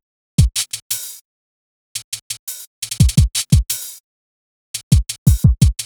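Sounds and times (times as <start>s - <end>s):
hip hop exotica drums in E minor: 0.4s - 1.2s, 2.0s - 4.0s, 4.8s - 5.8s.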